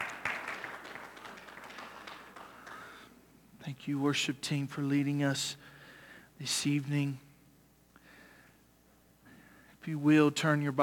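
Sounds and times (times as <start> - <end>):
audience hand clapping: 0.0 - 3.2
speech: 3.6 - 5.7, 6.4 - 7.2, 9.8 - 10.8.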